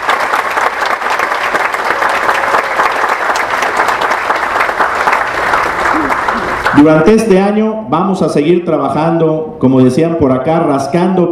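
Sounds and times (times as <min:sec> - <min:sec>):
audience applause: 0:00.0 - 0:06.9
speech: 0:06.8 - 0:11.3.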